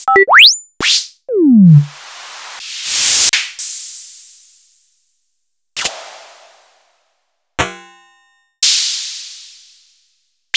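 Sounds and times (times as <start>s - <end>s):
Sony DPS-F7 synth: 0.0s - 0.7s, 1.3s - 2.0s.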